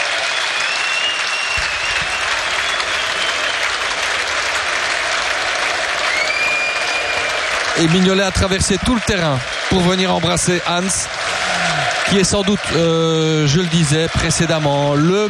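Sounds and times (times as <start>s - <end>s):
large stadium crowd cheering and applauding: 0.0s - 15.2s
whistles: 0.2s - 3.8s, 6.0s - 7.4s
speech: 7.8s - 11.4s, 12.1s - 15.2s.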